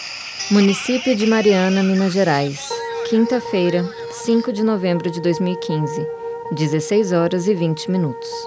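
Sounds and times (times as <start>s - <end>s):
vehicle horn honking: 0.4s - 4.3s
speech: 0.5s - 8.4s.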